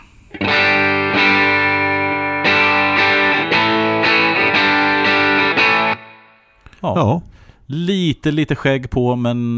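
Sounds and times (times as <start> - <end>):
electric guitar through amp-emulator pedal slightly overdriven: 0.0 - 6.5
speech: 6.8 - 9.5.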